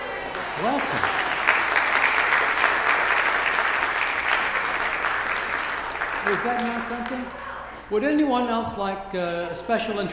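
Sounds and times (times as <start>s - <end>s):
audience applause: 0.0s - 7.7s
speech: 0.6s - 1.2s, 6.3s - 10.1s.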